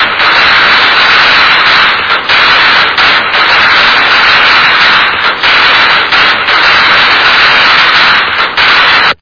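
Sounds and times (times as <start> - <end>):
close loud sharp fireworks: 0.0 - 9.2.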